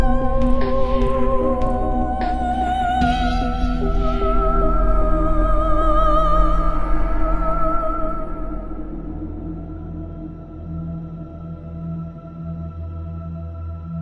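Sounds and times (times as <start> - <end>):
mystical theme music: 0.0 - 13.9.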